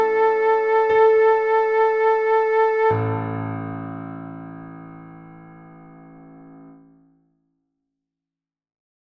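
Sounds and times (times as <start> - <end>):
flute: 0.0 - 3.9
piano: 0.0 - 7.3.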